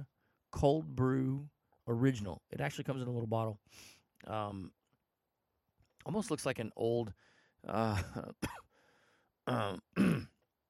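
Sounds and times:
speech: 0.6s - 4.8s, 6.0s - 8.6s, 9.5s - 10.3s
cough: 7.9s - 8.7s, 9.5s - 10.4s.

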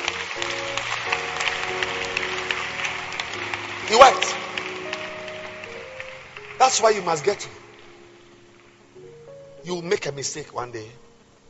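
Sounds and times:
audience clapping: 0.0s - 8.0s
speech: 3.9s - 4.4s, 6.7s - 7.6s, 9.7s - 11.0s.

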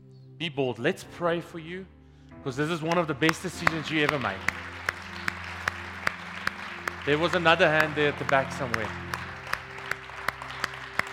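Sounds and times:
speech: 0.4s - 4.7s, 7.1s - 9.0s
slow hand clapping: 2.9s - 11.1s.

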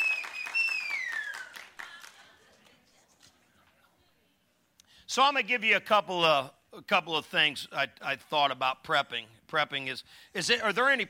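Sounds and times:
audience clapping: 0.0s - 2.8s
speech: 5.1s - 11.0s.

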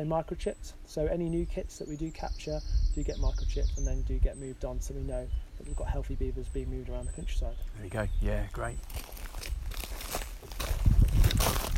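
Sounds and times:
faint hiss: 0.0s - 8.6s
speech: 0.0s - 9.6s
footsteps on newly installed wooden boardwalks at a Cornwall beaver project site: 8.8s - 11.7s.

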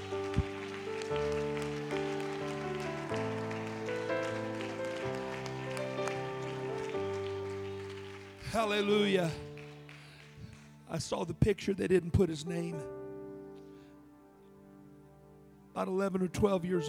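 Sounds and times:
audience clapping hands: 0.0s - 11.3s
speech: 8.5s - 9.4s, 10.9s - 13.0s, 15.8s - 16.8s.

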